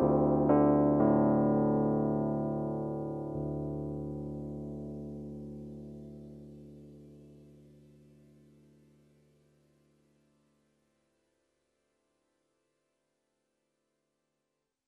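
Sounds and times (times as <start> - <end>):
V-Piano digital piano: 0.0 - 7.5.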